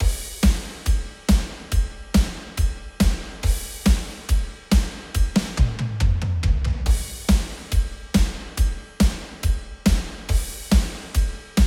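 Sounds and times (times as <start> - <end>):
drums: 0.0 - 11.6.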